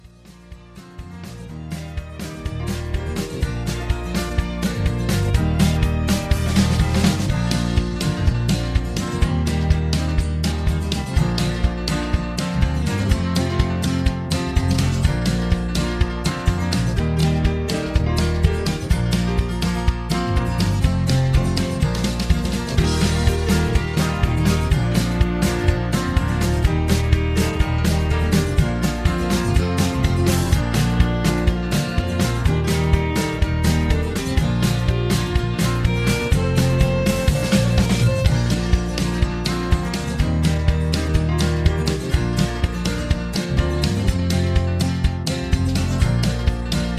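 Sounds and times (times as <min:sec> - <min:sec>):
instrumental music in a lower key: 0:00.0 - 0:46.9.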